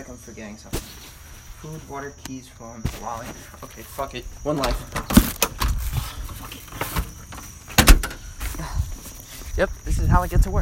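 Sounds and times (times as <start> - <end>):
speech: 0.0 - 5.2, 9.6 - 10.6
door being shut and locked: 4.5 - 5.8, 6.8 - 8.3.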